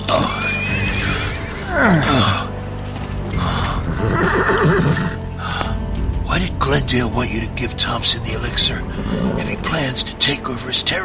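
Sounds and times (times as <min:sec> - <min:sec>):
horse whinnying: 0:00.0 - 0:02.5, 0:03.4 - 0:05.2
hooves clopping: 0:00.0 - 0:10.6
horse snorting: 0:00.3 - 0:02.5, 0:03.3 - 0:05.6, 0:08.7 - 0:10.2
speech: 0:01.8 - 0:02.4, 0:06.8 - 0:11.0.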